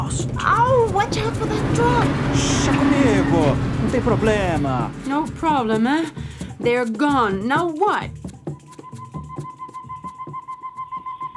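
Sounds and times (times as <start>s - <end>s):
recorded birdsong from the Mato Grosso: 0.0s - 6.4s
speech: 0.0s - 8.2s.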